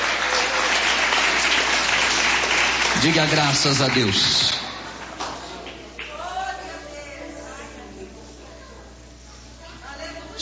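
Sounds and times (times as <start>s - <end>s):
audience clapping hands: 0.0s - 6.3s
speech: 3.0s - 4.6s.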